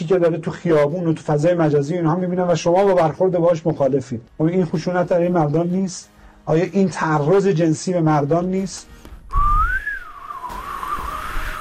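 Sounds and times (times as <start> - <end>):
speech: 0.1 - 9.5
person whistling: 9.3 - 11.5.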